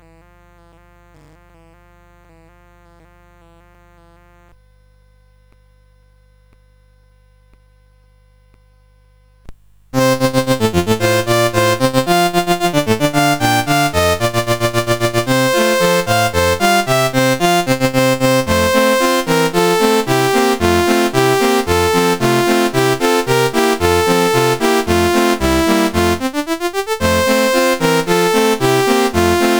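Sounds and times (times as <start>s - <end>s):
carol melody on CSG8580R5: 10.0s - 29.5s.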